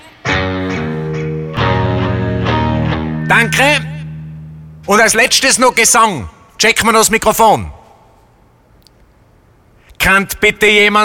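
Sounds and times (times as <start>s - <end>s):
distorted electric guitar chords at a soundcheck: 0.3s - 5.6s
speech: 3.3s - 3.9s, 4.8s - 7.8s, 10.0s - 11.0s.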